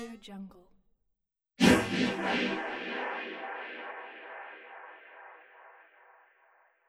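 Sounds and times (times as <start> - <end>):
swoosh transitions: 1.6 - 6.7.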